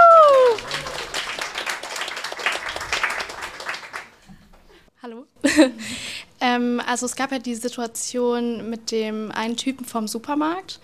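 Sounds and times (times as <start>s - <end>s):
audience applause: 0.0s - 4.3s
speech: 6.9s - 10.8s.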